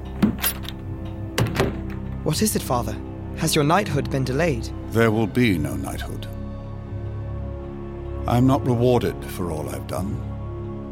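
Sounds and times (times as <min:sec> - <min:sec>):
door closing: 0:00.0 - 0:02.2
speech: 0:02.3 - 0:06.4, 0:08.2 - 0:10.3.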